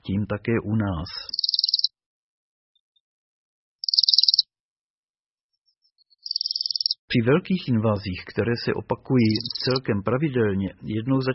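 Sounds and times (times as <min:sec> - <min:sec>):
speech: 0:00.0 - 0:01.4, 0:07.1 - 0:11.3
Bohemian waxwing calls: 0:01.3 - 0:01.9, 0:03.8 - 0:04.4, 0:09.2 - 0:09.8.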